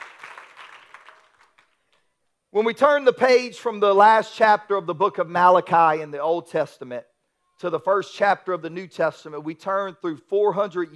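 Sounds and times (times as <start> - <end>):
audience hand clapping: 0.0 - 2.1
speech: 2.5 - 10.9.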